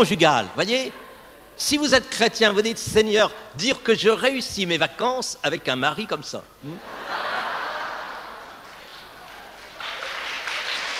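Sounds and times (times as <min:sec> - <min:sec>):
speech: 0:00.0 - 0:01.0, 0:01.6 - 0:07.2
laughter: 0:06.7 - 0:09.0
audience applause: 0:08.3 - 0:10.9.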